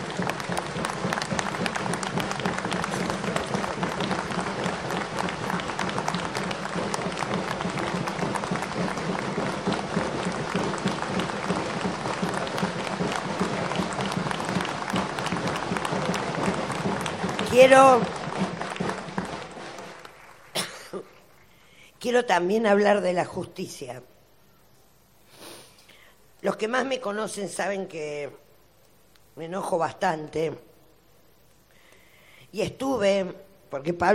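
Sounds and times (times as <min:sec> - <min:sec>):
large audience clapping for a woman: 0:00.0 - 0:21.5
speech: 0:17.7 - 0:18.1, 0:22.1 - 0:24.2, 0:26.4 - 0:28.4, 0:29.4 - 0:30.7, 0:32.5 - 0:34.1.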